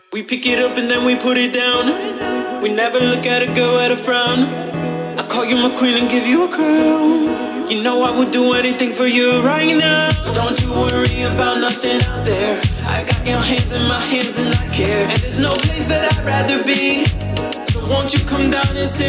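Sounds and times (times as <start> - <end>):
funky house music: 0.5 - 19.0.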